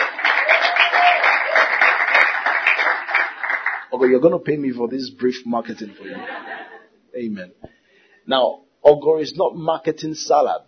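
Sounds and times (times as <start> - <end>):
crowd applauding: 0.0 - 4.3
speech: 4.0 - 7.7, 8.3 - 10.6
laughter: 5.9 - 6.9.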